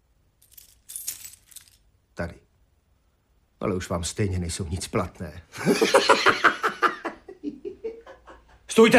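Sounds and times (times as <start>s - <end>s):
keys being handed over: 0.4s - 1.8s
speech: 2.2s - 2.4s, 3.6s - 6.5s, 8.8s - 8.9s
laughter: 5.5s - 8.6s.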